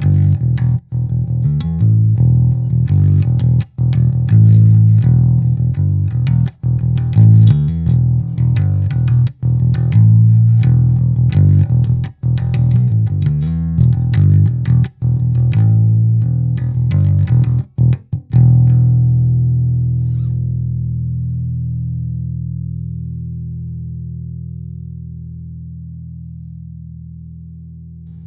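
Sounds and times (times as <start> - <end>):
low notes: 0.0 - 28.2.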